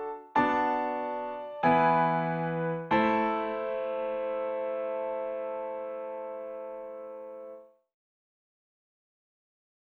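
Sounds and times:
piano: 0.0s - 7.8s.

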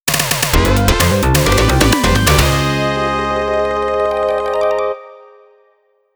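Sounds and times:
game clear jingle: 0.6s - 5.6s.

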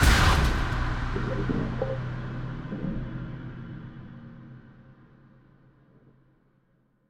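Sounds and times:
instant shock sound effect: 0.0s - 3.2s.

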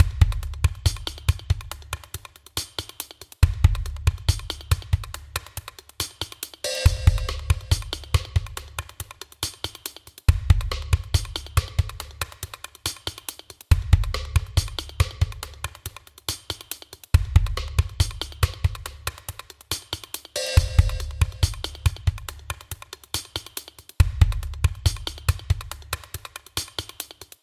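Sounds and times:
percussion-only loop: 0.0s - 27.4s.

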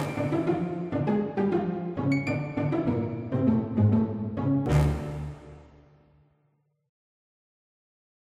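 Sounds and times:
funny horror music: 0.0s - 5.7s.

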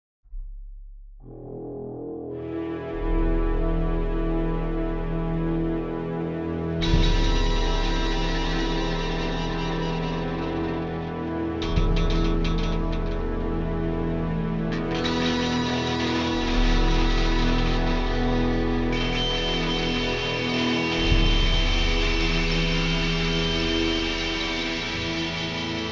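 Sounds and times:
creepy start menu music: 1.2s - 25.9s.

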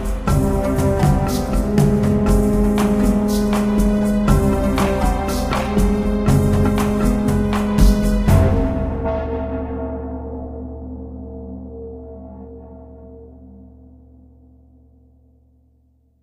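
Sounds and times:
fast Ethiopian music: 0.0s - 9.8s.

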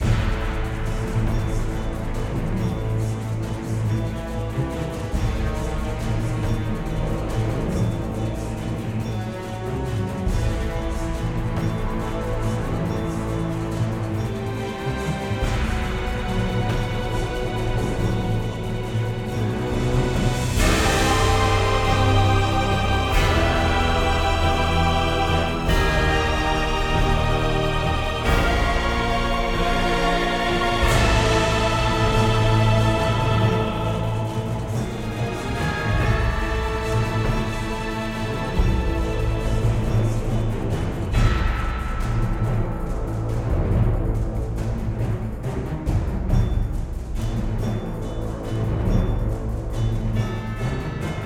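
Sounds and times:
battle music loop: 0.0s - 51.2s.

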